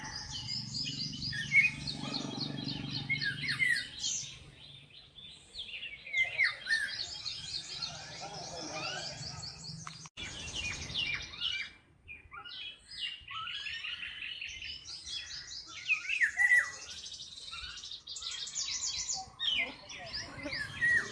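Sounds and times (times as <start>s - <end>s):
Indian golden oriole: 0.0s - 21.0s.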